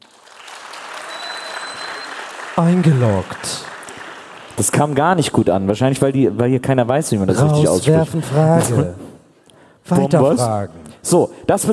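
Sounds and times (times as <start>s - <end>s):
audience applause: 0.0s - 5.2s
faint high whistle-like tone: 1.1s - 2.2s
speech: 2.6s - 3.7s, 4.6s - 9.0s, 9.8s - 11.7s.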